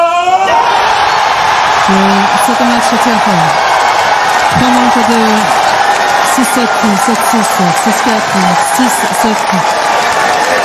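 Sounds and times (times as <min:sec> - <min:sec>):
tennis crowd cheering and clapping in an ovation after Frances Tiafoe's match point: 0:00.0 - 0:10.6
speech: 0:01.9 - 0:03.6, 0:04.5 - 0:05.6, 0:06.4 - 0:10.1.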